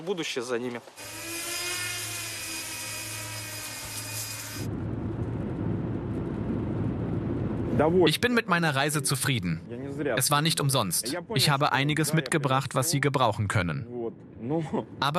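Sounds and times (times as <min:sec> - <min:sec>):
speech: 0:00.0 - 0:01.3, 0:07.8 - 0:15.1
work drone in flight with high buzzing motor whine: 0:01.0 - 0:04.9
rough low rushing noise: 0:04.6 - 0:11.7.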